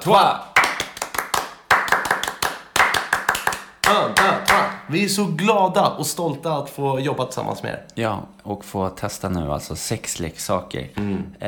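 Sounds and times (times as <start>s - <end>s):
speech: 0.0s - 0.4s, 3.9s - 11.4s
French-style rhythmic applause: 0.1s - 4.8s.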